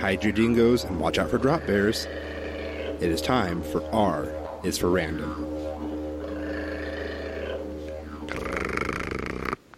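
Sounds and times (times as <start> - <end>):
speech: 0.0 - 2.4, 3.0 - 5.6
voice imitating a didgeridoo: 0.0 - 9.6.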